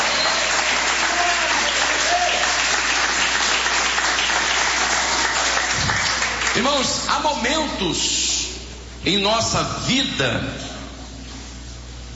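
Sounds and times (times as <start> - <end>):
audience applauding: 0.0 - 6.8
speech: 6.6 - 8.4, 9.0 - 10.7.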